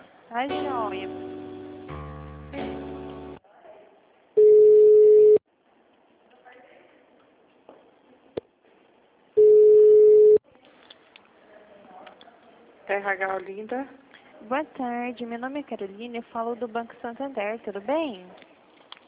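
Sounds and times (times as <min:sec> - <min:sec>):
speech: 0:00.3 - 0:01.3, 0:13.0 - 0:18.5
telephone line ringing while a call is transferred: 0:04.4 - 0:05.4, 0:09.4 - 0:10.4.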